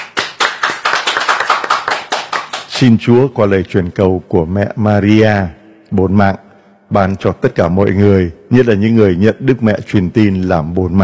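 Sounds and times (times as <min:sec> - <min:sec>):
applause at a church Annunciation feast: 0:00.0 - 0:02.8
speech: 0:02.8 - 0:11.0.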